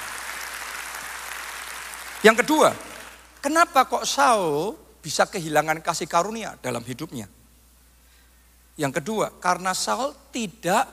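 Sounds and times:
audience applause: 0:00.0 - 0:03.3
speech: 0:02.2 - 0:07.4, 0:08.8 - 0:10.9.

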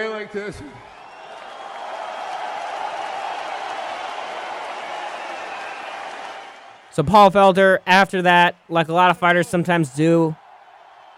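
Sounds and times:
speech: 0:00.0 - 0:01.0, 0:07.0 - 0:10.4
crowd applauding: 0:00.0 - 0:11.1.

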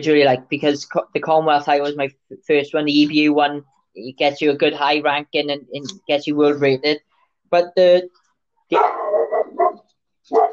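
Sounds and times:
speech: 0:00.0 - 0:09.1
dog barking: 0:08.7 - 0:10.5.

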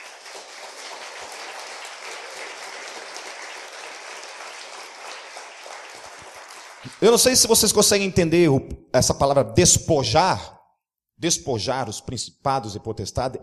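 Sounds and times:
audience applause: 0:00.0 - 0:07.4
speech: 0:06.8 - 0:10.6, 0:11.2 - 0:13.4.

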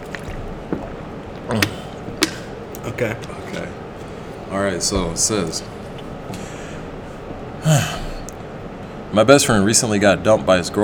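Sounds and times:
swig of water: 0:00.0 - 0:02.4
speech: 0:01.5 - 0:01.7, 0:03.0 - 0:03.8, 0:04.5 - 0:05.7, 0:07.6 - 0:08.0, 0:09.2 - 0:10.8.

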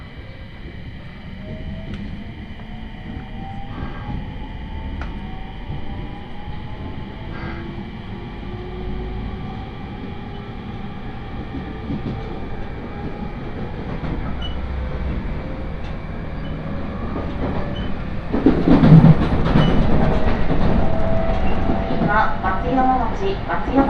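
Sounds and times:
faint rising train motor whines: 0:00.0 - 0:18.4
JR 701-series train carriage rumbling on the Tohoku Main Line: 0:00.0 - 0:23.8.

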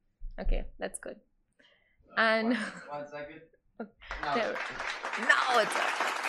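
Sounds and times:
speech: 0:00.4 - 0:01.3, 0:02.1 - 0:06.2
laughter: 0:02.4 - 0:03.3, 0:04.0 - 0:06.2
clapping sound effect: 0:04.1 - 0:06.2.

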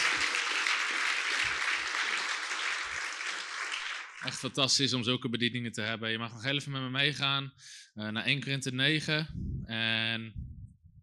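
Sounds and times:
audience applause: 0:00.0 - 0:04.5
speech: 0:04.2 - 0:10.5.

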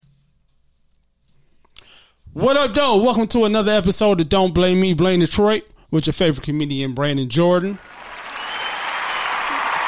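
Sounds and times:
speech: 0:02.4 - 0:08.0
crowd applause: 0:07.8 - 0:09.8.

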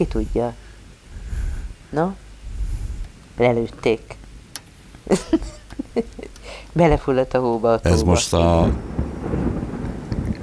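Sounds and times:
speech: 0:00.0 - 0:00.6, 0:01.9 - 0:02.2, 0:03.4 - 0:04.2, 0:05.1 - 0:09.0
thunder rumbling: 0:00.0 - 0:03.2, 0:07.8 - 0:10.4.

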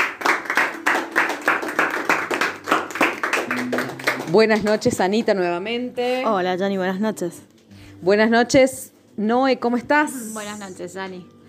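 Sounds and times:
small group clapping for the women: 0:00.0 - 0:05.6
speech: 0:03.6 - 0:11.4.

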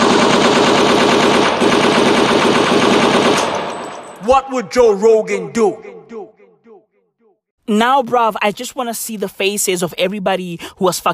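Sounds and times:
rapid machine-gun fire: 0:00.0 - 0:04.0
speech: 0:04.3 - 0:06.0, 0:07.7 - 0:11.1.

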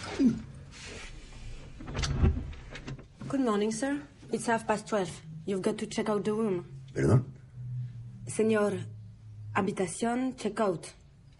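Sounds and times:
speech: 0:00.2 - 0:00.5, 0:03.4 - 0:07.4, 0:08.3 - 0:09.0, 0:09.6 - 0:11.3
hotel room door being opened: 0:00.9 - 0:03.1.

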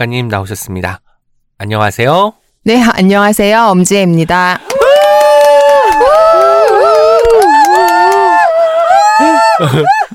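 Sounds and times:
speech: 0:00.0 - 0:04.7, 0:09.6 - 0:10.1
small audience cheering and whooping: 0:04.6 - 0:10.1
laughter: 0:08.3 - 0:10.1.

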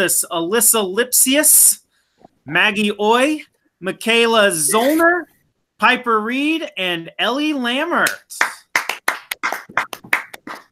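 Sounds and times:
speech: 0:00.0 - 0:01.8, 0:02.4 - 0:08.6
small group clapping: 0:08.0 - 0:10.7.

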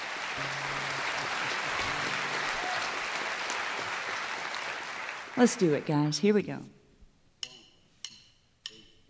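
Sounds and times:
audience round of applause: 0:00.0 - 0:06.0
speech: 0:05.4 - 0:06.8.

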